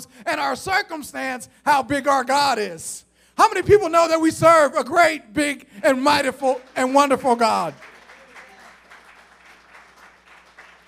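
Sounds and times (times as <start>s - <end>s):
speech: 0.0s - 7.9s
crowd clapping: 5.9s - 10.8s.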